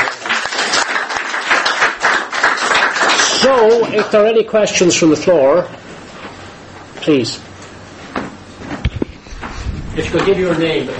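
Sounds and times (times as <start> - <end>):
audience round of applause: 0.0 - 4.2
speech: 3.4 - 5.9, 7.1 - 7.5, 10.1 - 10.9.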